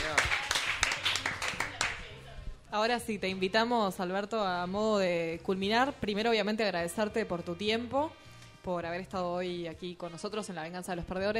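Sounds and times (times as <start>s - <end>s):
sparse hand clapping from a few people greeting a guest: 0.0s - 2.0s
speech: 2.8s - 11.3s.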